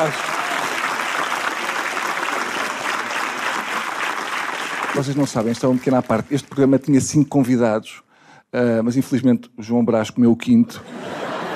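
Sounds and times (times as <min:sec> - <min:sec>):
speech: 0:00.0 - 0:00.4, 0:05.0 - 0:11.2
audience applause: 0:00.0 - 0:06.7
laughter: 0:10.8 - 0:11.5.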